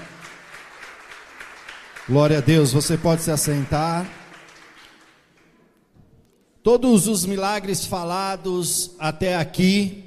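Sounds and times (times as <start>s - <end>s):
audience applauding: 0.0s - 5.6s
speech: 2.1s - 4.2s, 6.6s - 10.0s.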